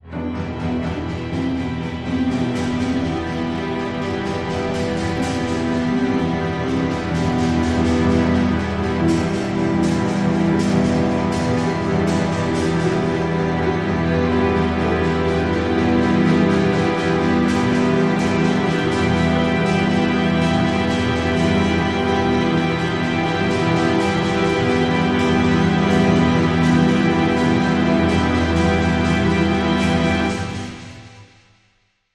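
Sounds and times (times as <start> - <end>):
industrial sound: 0.0 - 31.3.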